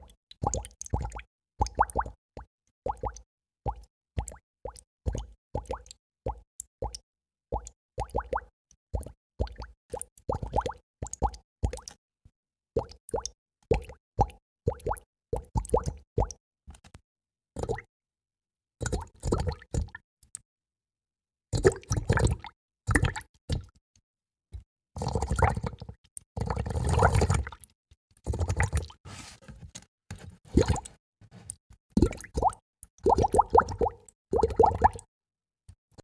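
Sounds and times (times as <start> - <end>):
small wet bubbles: 0.0 - 12.0, 12.8 - 16.4, 18.8 - 20.0, 21.6 - 23.8, 25.0 - 29.6, 30.3 - 35.1.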